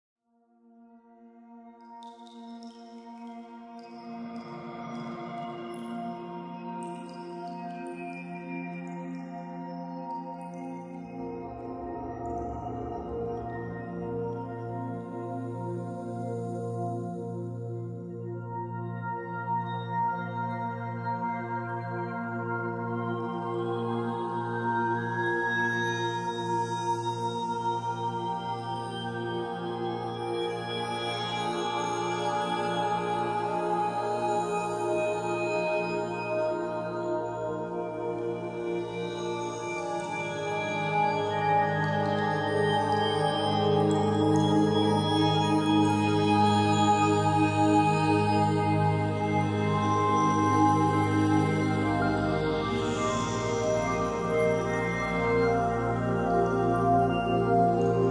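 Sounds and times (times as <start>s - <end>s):
background music: 2.0s - 58.0s.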